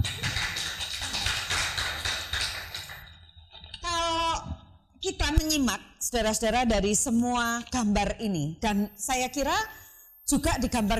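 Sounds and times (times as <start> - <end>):
group applauding: 0.0 - 3.2
speech: 5.0 - 10.9.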